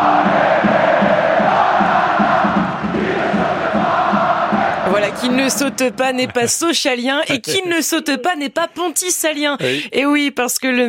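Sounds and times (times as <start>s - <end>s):
stadium crowd of football supporters cheering: 0.0s - 6.5s
football supporters chanting in unison: 0.0s - 7.8s
laughter: 4.9s - 8.5s
speech: 5.2s - 10.8s.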